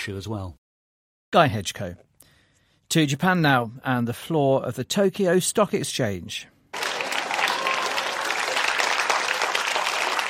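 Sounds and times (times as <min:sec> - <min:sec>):
speech: 0:00.0 - 0:00.6, 0:01.3 - 0:02.1, 0:02.9 - 0:06.5
crowd of stock exchange traders applauding: 0:06.8 - 0:10.2.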